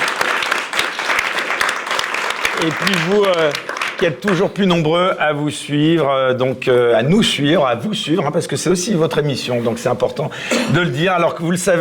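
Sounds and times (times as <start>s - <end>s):
live audience applause: 0.0s - 4.5s
speech: 2.6s - 11.7s.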